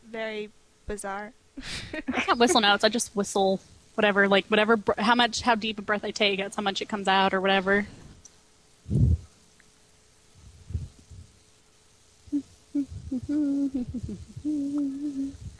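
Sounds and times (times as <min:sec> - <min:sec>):
speech: 0:00.1 - 0:08.0, 0:13.4 - 0:15.4
person humming a video game theme tune: 0:08.9 - 0:09.2, 0:12.3 - 0:15.5.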